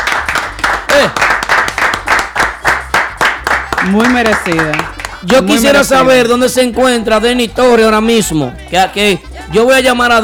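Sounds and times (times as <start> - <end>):
applause: 0.0 - 5.4
speech: 1.0 - 1.2, 3.8 - 10.2.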